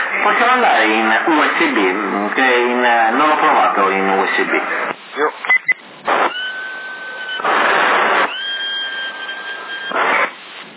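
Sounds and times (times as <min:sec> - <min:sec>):
band-limited hiss and static bursts: 0:00.0 - 0:10.7
speech: 0:00.2 - 0:05.4
whistling into a CB radio microphone: 0:05.5 - 0:10.0.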